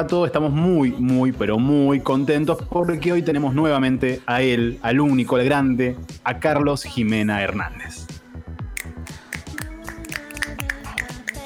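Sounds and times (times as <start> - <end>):
speech: 0.0 - 8.2
finger snapping: 8.8 - 11.4.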